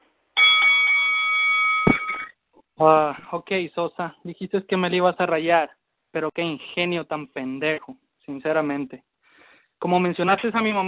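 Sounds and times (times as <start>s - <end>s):
loud high-pitched bell ringing: 0.4s - 2.3s
brief thump: 1.9s - 2.2s
speech: 2.8s - 9.1s, 9.8s - 10.8s.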